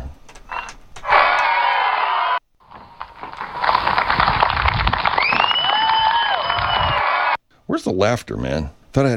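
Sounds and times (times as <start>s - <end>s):
crowd applause sound effect: 1.1s - 7.3s
speech: 8.0s - 9.1s.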